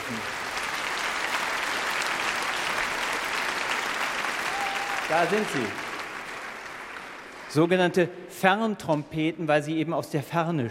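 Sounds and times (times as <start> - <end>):
steady dense applause from a sizable audience: 0.0 - 7.7
speech: 5.1 - 5.8, 7.5 - 10.6.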